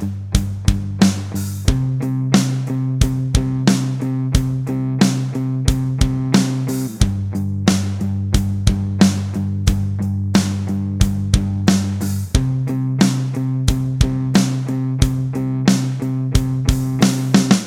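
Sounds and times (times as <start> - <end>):
guitar scale backing track in G and C: 0.0 - 17.6.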